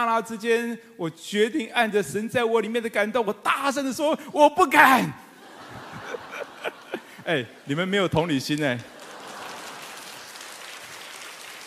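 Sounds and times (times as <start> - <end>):
speech: 0.0 - 5.3, 6.6 - 8.9
laughter: 5.3 - 7.9, 8.8 - 10.3
audience clapping: 8.6 - 11.6.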